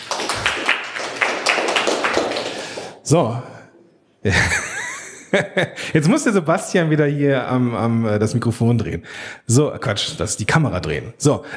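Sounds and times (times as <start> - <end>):
audience applause for a presenter: 0.0 - 2.9
speech: 3.1 - 3.5, 4.2 - 4.6, 5.3 - 11.5.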